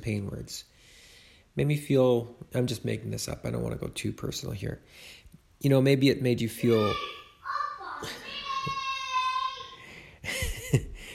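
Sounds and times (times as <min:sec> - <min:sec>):
speech: 0:00.0 - 0:01.0, 0:01.6 - 0:07.2, 0:08.0 - 0:08.8
two-year-old yelling along to a cartoon theme song: 0:06.5 - 0:09.8.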